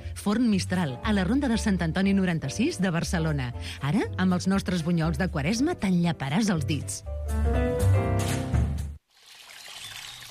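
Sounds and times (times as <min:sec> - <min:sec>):
speech: 0:00.2 - 0:08.4
flowing water in the Parc Natural del Montseny: 0:09.0 - 0:10.2.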